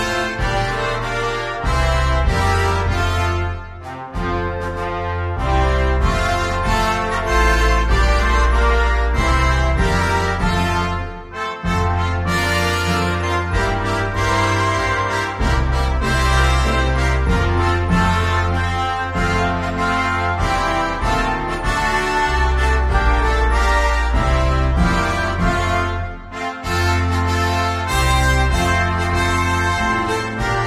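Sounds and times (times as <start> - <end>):
concert band playing: 0.0 - 30.6.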